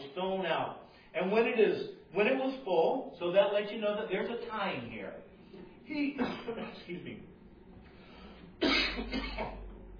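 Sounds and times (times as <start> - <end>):
speech: 0.2 - 7.3, 8.6 - 9.9
preacher coughing after choking on spit: 6.2 - 6.9, 8.6 - 9.6.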